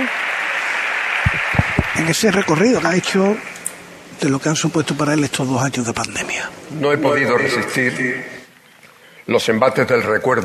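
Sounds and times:
audience ovation, applause: 0.0 - 3.5
speech: 2.1 - 3.5, 4.2 - 8.3, 9.3 - 10.4.

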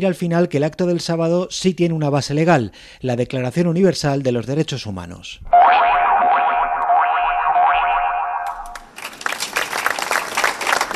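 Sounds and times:
speech: 0.0 - 5.8
sustained wavering tone: 5.5 - 8.9
crowd applause ending a minute of silence in Algemesí: 8.5 - 10.9.

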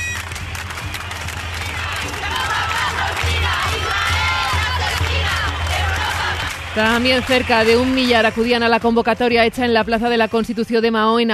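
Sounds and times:
large protest crowd shouting slogans in unison: 1.1 - 8.0
speech: 6.8 - 11.3.

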